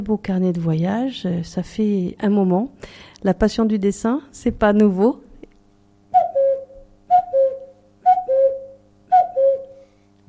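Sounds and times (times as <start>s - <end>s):
speech: 0.0s - 5.2s
person whistling an imitation of a cuckoo call: 6.1s - 9.9s.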